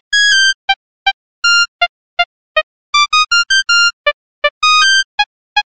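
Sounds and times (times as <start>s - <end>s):
mono ringtone: 0.2s - 0.8s, 1.4s - 1.9s, 3.0s - 5.7s.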